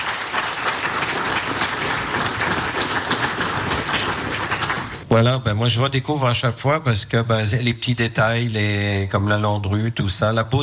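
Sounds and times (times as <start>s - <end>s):
audience applause: 0.0s - 5.1s
speech: 5.1s - 10.6s.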